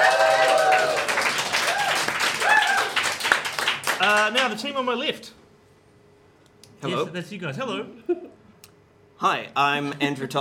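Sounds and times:
whoops and cheering voices: 0.0 - 3.0
crowd clapping: 0.0 - 4.6
speech: 4.0 - 5.4, 6.8 - 8.3, 9.2 - 10.4.

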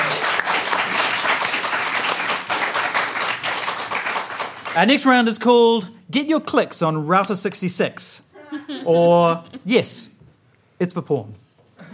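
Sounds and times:
audience applause: 0.0 - 4.8
speech: 4.8 - 10.1, 10.8 - 11.4.

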